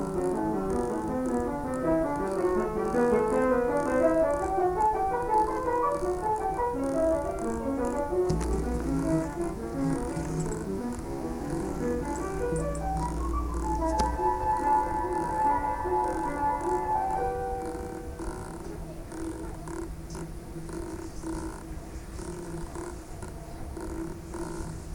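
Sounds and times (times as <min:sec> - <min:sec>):
sibling noise: 0:00.0 - 0:18.6
instrument practice: 0:00.0 - 0:24.9.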